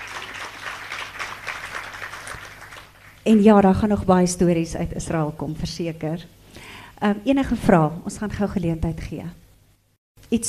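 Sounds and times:
audience clapping hands: 0.0 - 3.3
speech: 3.3 - 6.4, 7.0 - 9.4.

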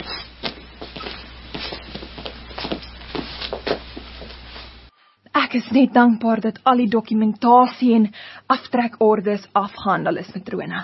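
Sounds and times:
footsteps walking to an office: 0.0 - 4.9
speech: 5.5 - 10.8.

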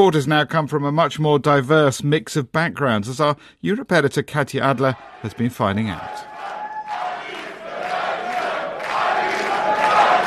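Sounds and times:
speech: 0.0 - 6.3
steady crowd roar: 4.8 - 10.2
large crowd chanting a name: 6.0 - 10.2.

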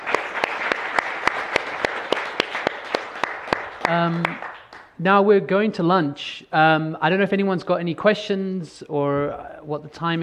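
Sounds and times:
audience round of applause: 0.0 - 4.9
speech: 3.9 - 10.2.

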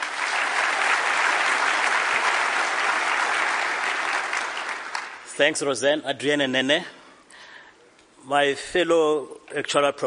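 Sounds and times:
audience round of applause for speakers: 0.0 - 5.3
speech: 5.4 - 7.0, 8.3 - 10.0.

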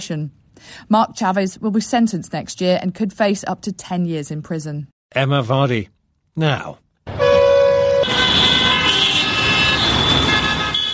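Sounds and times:
speech: 0.0 - 6.8
vehicle horns honking on the streets of Dhaka, Bangladesh: 7.1 - 10.9.

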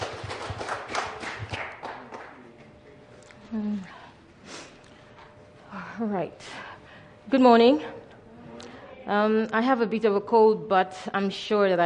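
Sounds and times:
warm round of applause: 0.0 - 2.8
speech: 6.0 - 6.7, 7.3 - 8.0, 9.1 - 11.8.

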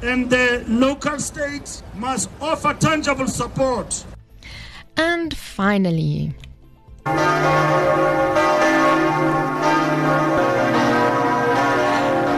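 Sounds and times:
speech: 0.0 - 10.3
cathedral bells of Notre Dame in Paris ringing: 7.1 - 12.3.

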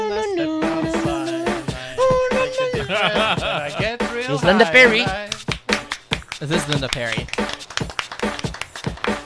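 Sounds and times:
laughter: 0.2 - 5.4, 6.4 - 7.3
hands clapping to a beat: 2.3 - 9.2
speech: 4.3 - 5.3, 6.4 - 7.6.

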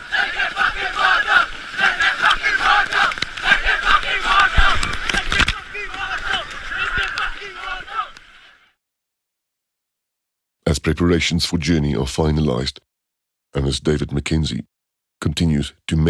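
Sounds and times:
children chanting while diving into sea waves: 0.0 - 8.7
sea waves: 0.0 - 8.7
speech: 10.8 - 12.9, 13.5 - 16.0.

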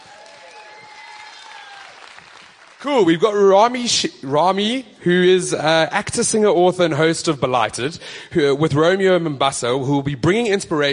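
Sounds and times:
audience applause: 0.0 - 3.0
speech: 2.8 - 10.9.

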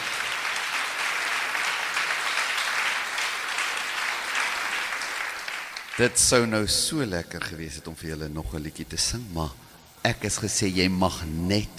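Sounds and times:
audience applause: 0.0 - 6.6
speech: 6.0 - 11.7.

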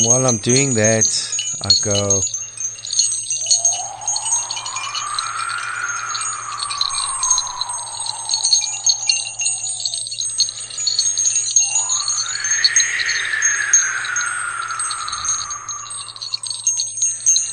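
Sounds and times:
speech: 0.0 - 2.4
long sliding tones: 0.0 - 17.5
tinkling string of small bells: 0.0 - 17.5.

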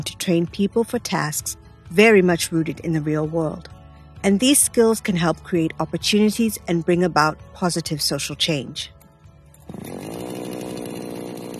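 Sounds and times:
speech: 0.0 - 9.0
chainsaw running: 9.4 - 11.5.

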